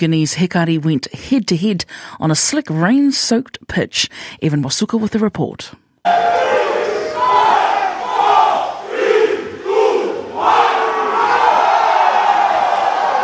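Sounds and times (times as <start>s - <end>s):
speech: 0.0s - 6.7s
soccer fans chanting at a match: 6.1s - 13.2s.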